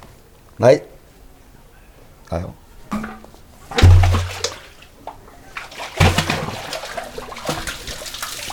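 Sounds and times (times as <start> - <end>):
speech: 0.6 - 0.9, 2.3 - 3.0
bucket scooping water from a well: 2.9 - 4.9, 5.6 - 8.5
water sloshing and splashing: 2.9 - 8.5
water dripping and trickling: 3.8 - 8.5.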